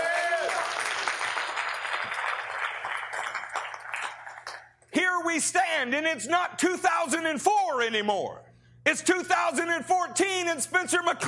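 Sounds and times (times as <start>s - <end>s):
audience hand clapping: 0.0s - 4.9s
speech: 5.3s - 11.2s.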